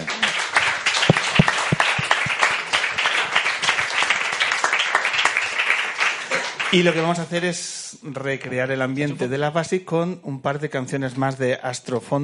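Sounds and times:
audience applause: 0:00.0 - 0:07.0
speech: 0:06.7 - 0:12.2.

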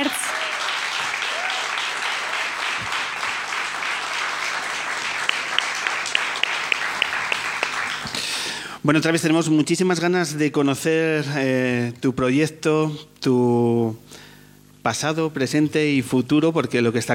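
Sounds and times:
audience applause: 0:00.0 - 0:08.5
speech: 0:08.8 - 0:14.2, 0:14.8 - 0:17.1.

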